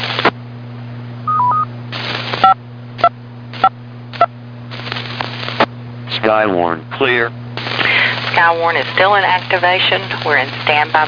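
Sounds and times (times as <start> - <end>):
static bursts and clicks: 0.0 - 0.4, 1.5 - 5.8, 7.6 - 11.0
DTMF touch-tone beeps sent to a repeater: 1.3 - 1.7
speech: 6.3 - 7.4, 8.4 - 11.0.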